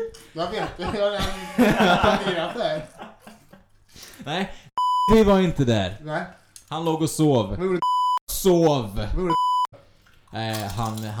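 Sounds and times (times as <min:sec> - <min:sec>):
laughter: 0:00.0 - 0:04.6
speech: 0:00.1 - 0:03.0, 0:04.2 - 0:09.5, 0:10.3 - 0:11.1
electronic censor bleep: 0:04.8 - 0:05.2, 0:07.8 - 0:08.2, 0:09.3 - 0:09.7.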